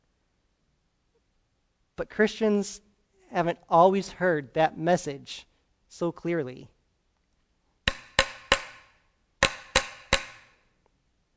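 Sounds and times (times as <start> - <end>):
speech: 2.0 - 6.7
hammer blows on a wooden church door: 7.9 - 10.6.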